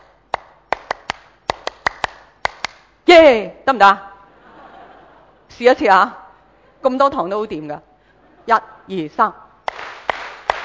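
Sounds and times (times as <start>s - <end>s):
rhythmic hand clapping demonstration: 0.0s - 2.9s, 9.6s - 10.6s
speech: 3.7s - 4.1s, 5.6s - 6.2s, 6.8s - 7.9s, 8.5s - 9.4s
laughter: 4.3s - 5.6s.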